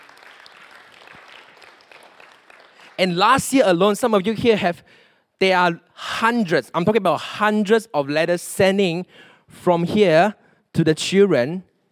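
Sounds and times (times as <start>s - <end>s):
audience applause: 0.0s - 3.0s
speech: 3.0s - 11.7s.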